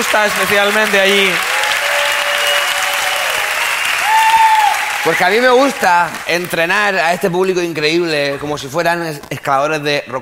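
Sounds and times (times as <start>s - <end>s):
speech: 0.0s - 1.5s, 5.0s - 10.1s
applause: 0.0s - 7.4s.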